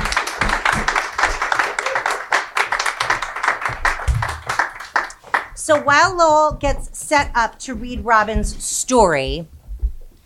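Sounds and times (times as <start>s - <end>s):
audience clapping: 0.0s - 6.6s
speech: 5.7s - 9.6s.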